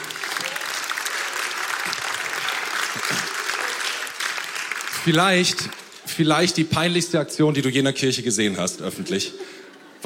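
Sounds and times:
crowd applause: 0.0 - 6.6
speech: 5.0 - 10.0.

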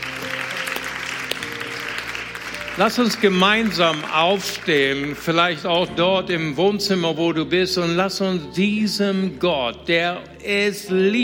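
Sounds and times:
audience applause: 0.0 - 5.7
speech: 2.8 - 11.2.

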